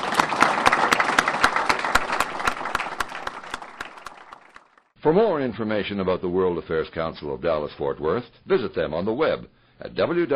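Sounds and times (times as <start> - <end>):
audience applause: 0.0 - 4.9
speech: 5.0 - 10.3.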